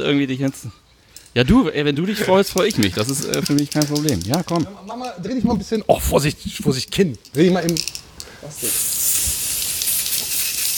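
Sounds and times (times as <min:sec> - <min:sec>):
speech: 0:00.0 - 0:09.1
hairspray aerosol hiss sprayed onto hair: 0:08.6 - 0:10.7.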